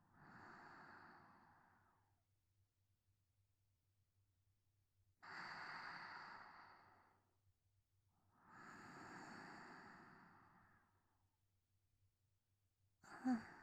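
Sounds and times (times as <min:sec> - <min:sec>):
sleeping breath: 0:00.2 - 0:02.0, 0:05.2 - 0:07.2, 0:08.4 - 0:10.9, 0:13.0 - 0:13.6.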